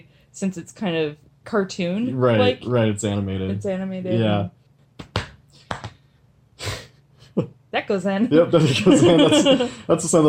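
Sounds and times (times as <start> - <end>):
speech: 0.0 - 5.1, 7.4 - 10.2
slaps on the chest: 5.0 - 6.0
laughter: 8.6 - 10.1.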